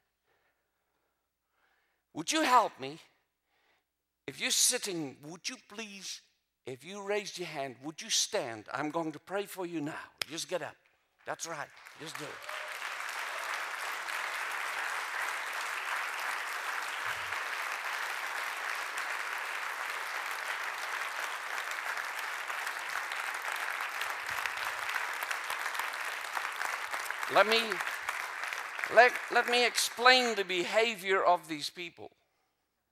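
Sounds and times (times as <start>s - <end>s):
speech: 2.2s - 3.1s, 4.3s - 12.7s, 27.3s - 27.9s, 28.9s - 32.2s
audience clapping: 11.1s - 31.2s.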